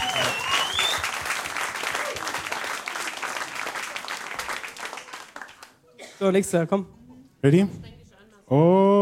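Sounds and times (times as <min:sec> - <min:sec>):
audience applause at a live show: 0:00.0 - 0:05.8
speech: 0:06.2 - 0:07.9, 0:08.5 - 0:08.9.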